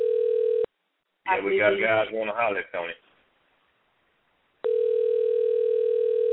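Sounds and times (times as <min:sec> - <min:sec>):
telephone line dialing tone: 0:00.0 - 0:00.7, 0:04.6 - 0:06.3
speech: 0:01.3 - 0:03.0.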